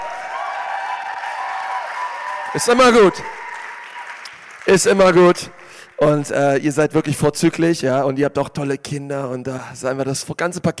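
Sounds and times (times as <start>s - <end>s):
audience applause: 0.0s - 6.4s
speech: 2.5s - 3.4s, 4.7s - 10.7s.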